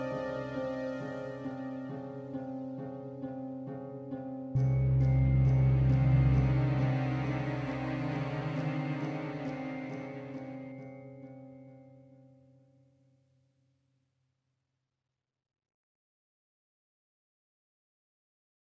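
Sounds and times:
tense music: 0:00.0 - 0:11.7.

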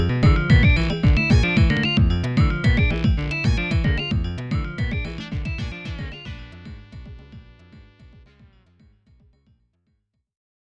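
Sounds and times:
percussion: 0:00.0 - 0:08.4.

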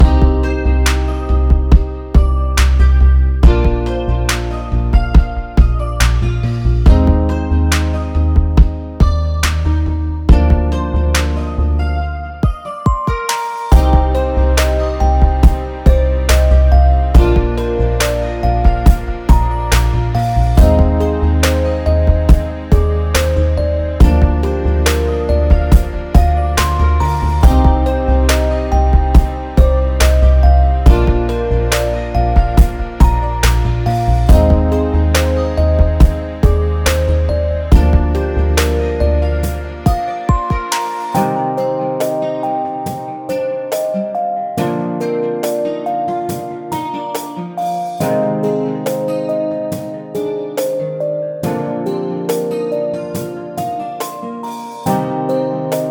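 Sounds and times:
sad music: 0:00.0 - 0:55.9.

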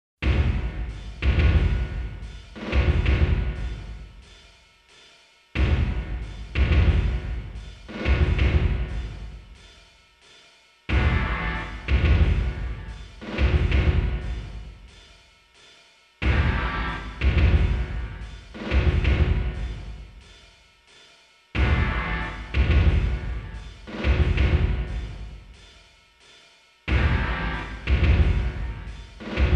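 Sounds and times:
final match sudden death music: 0:00.2 - 0:04.2, 0:05.5 - 0:09.5, 0:10.9 - 0:14.8, 0:16.2 - 0:20.2, 0:21.6 - 0:25.3, 0:26.9 - 0:29.5.

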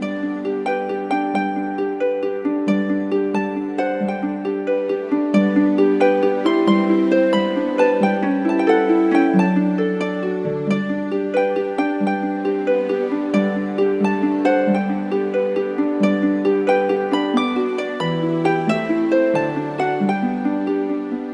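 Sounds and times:
music piece: 0:00.0 - 0:21.3.

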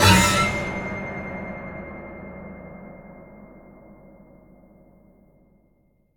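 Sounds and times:
death musical sting: 0:00.0 - 0:02.4.

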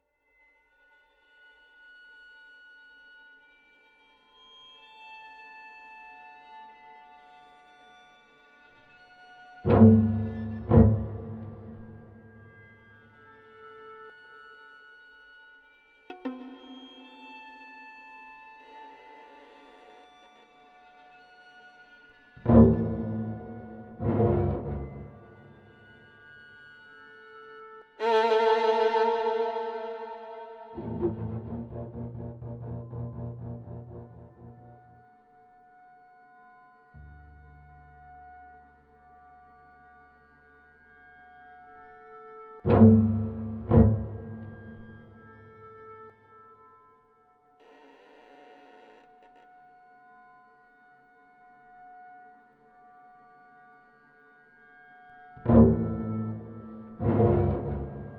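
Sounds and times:
creepy violins: 0:09.7 - 0:12.9, 0:22.4 - 0:26.1, 0:28.0 - 0:34.9, 0:42.6 - 0:45.7, 0:55.4 - 0:58.1.

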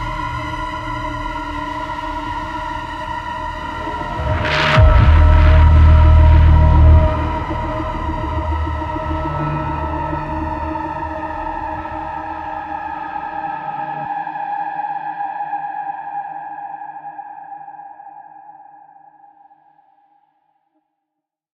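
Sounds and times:
ambient combat music: 0:00.0 - 0:14.2.

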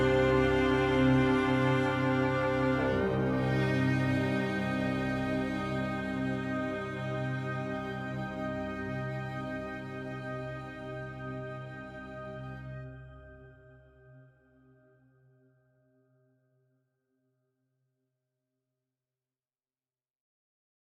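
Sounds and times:
sad music loop: 0:00.0 - 0:12.7.

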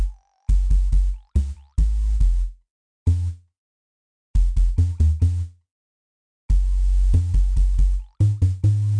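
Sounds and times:
robot bass: 0:00.0 - 0:03.4, 0:04.4 - 0:05.5, 0:06.5 - 0:08.9.

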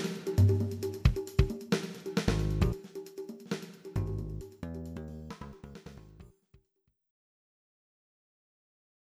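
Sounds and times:
breakbeat drums: 0:00.0 - 0:06.2.

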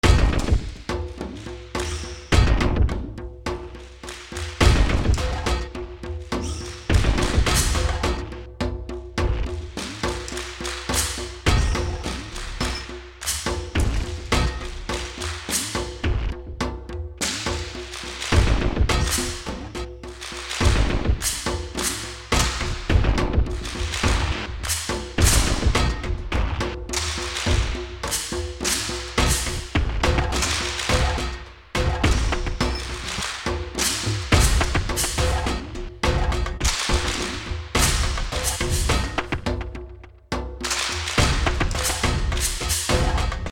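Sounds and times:
rural battle percussion loop: 0:00.0 - 0:43.5.

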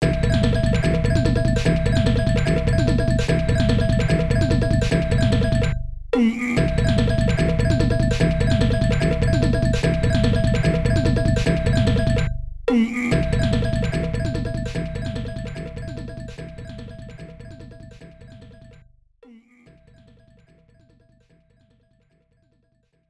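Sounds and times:
boss battle background music: 0:00.0 - 0:05.8, 0:06.6 - 0:12.3, 0:13.1 - 0:17.1.

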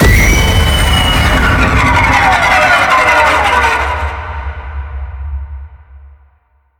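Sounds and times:
jump scare impact: 0:00.0 - 0:05.2.

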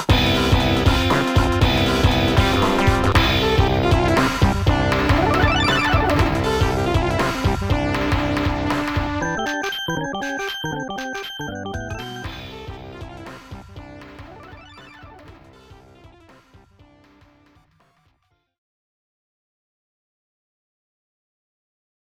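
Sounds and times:
boss battle background music: 0:00.0 - 0:17.6.

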